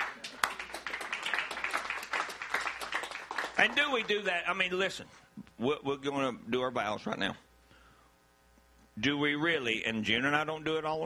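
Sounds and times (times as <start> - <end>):
hand clapping: 0.0 - 4.2
speech: 3.6 - 7.5, 9.0 - 11.0.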